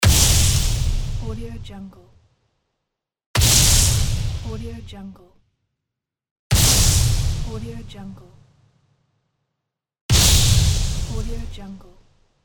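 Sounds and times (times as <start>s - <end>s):
explosion: 0.0s - 1.6s, 3.4s - 4.9s, 6.5s - 7.9s, 10.1s - 11.6s.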